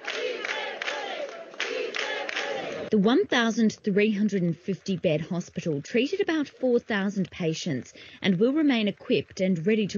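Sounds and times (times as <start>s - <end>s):
crowd applauding and cheering as last patients leave Madrid field hospital: 0.0s - 2.9s
speech: 2.9s - 9.9s.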